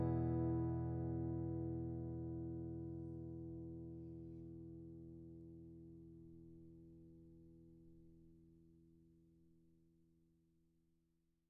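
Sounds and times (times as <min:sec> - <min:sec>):
guitars strumming: 0:00.0 - 0:03.1.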